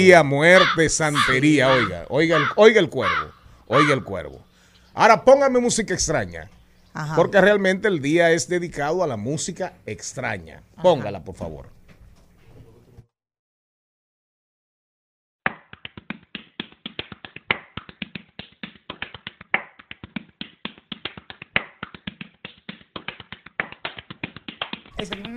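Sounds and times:
speech: 0:00.0 - 0:04.4, 0:05.0 - 0:11.7
hands patting a belly: 0:15.5 - 0:25.3.

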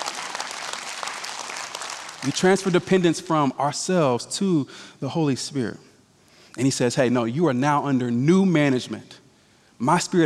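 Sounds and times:
audience clapping: 0:00.0 - 0:03.1
speech: 0:02.2 - 0:05.9, 0:06.6 - 0:09.2, 0:09.8 - 0:10.2.

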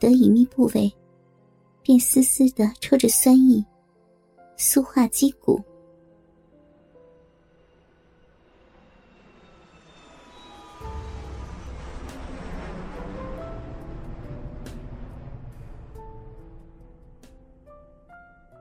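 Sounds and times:
speech: 0:00.0 - 0:01.0, 0:01.8 - 0:03.7, 0:04.6 - 0:05.7
airplane taking off: 0:07.7 - 0:18.4
whining airplane engine tones: 0:08.7 - 0:16.7.

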